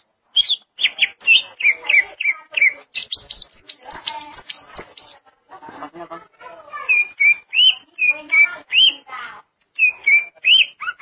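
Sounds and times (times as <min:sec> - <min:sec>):
greater green leafbird song with whistled notes: 0:00.3 - 0:05.2, 0:06.9 - 0:09.0, 0:09.6 - 0:11.0.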